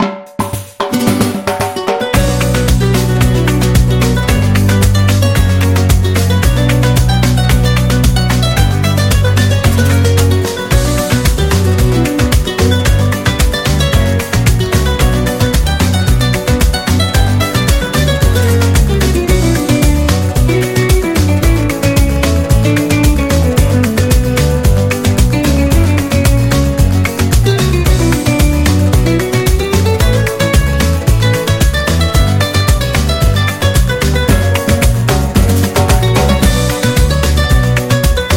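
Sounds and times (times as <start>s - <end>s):
flamenco music: 0.0s - 38.3s.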